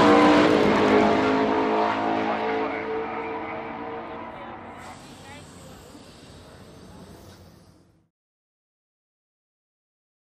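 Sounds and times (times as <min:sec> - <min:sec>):
sports car race pit: 0:00.0 - 0:08.1.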